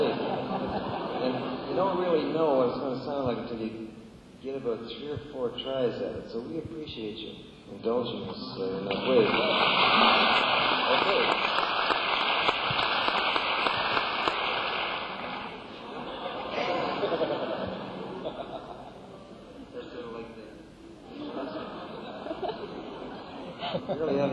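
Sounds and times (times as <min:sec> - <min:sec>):
laughter: 0:00.0 - 0:02.2, 0:08.1 - 0:11.6, 0:15.3 - 0:20.3, 0:21.0 - 0:24.3
speech: 0:01.8 - 0:11.5
audience applause: 0:08.9 - 0:18.5.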